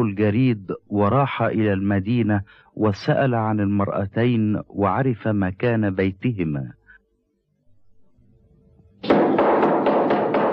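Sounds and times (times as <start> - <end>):
speech: 0.0 - 6.8
old man knocking on the door of a house: 9.0 - 10.5.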